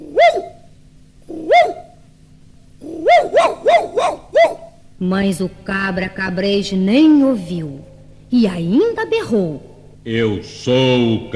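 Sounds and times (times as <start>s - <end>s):
small dog barking: 0.0s - 0.6s, 1.3s - 2.0s, 2.8s - 4.8s
speech: 5.0s - 11.3s.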